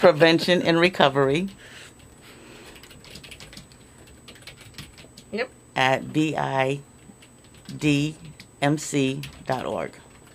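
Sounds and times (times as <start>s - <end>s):
speech: 0.0s - 1.8s, 5.3s - 6.9s, 7.7s - 10.0s
typing on a computer keyboard: 0.1s - 5.3s, 7.2s - 8.5s, 9.1s - 10.3s.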